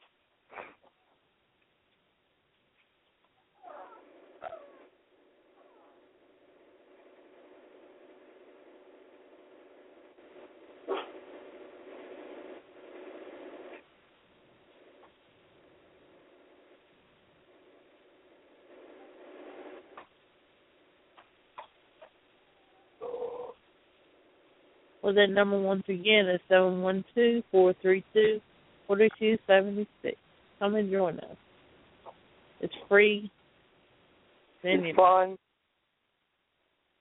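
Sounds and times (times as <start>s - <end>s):
dog in the background: 3.6s - 4.9s, 10.9s - 11.2s, 22.0s - 23.6s
speech: 25.0s - 31.3s, 32.6s - 33.4s, 34.6s - 35.4s.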